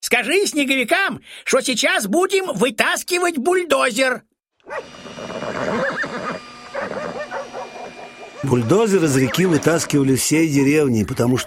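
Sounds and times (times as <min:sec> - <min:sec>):
speech: 0:00.1 - 0:06.2, 0:08.4 - 0:11.4
horse neighing: 0:04.7 - 0:11.4.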